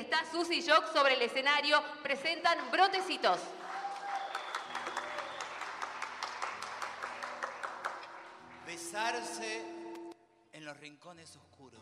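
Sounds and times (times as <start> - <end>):
speech: 0.2 - 3.8, 8.7 - 9.8, 10.6 - 11.7
audience applause: 3.5 - 9.5.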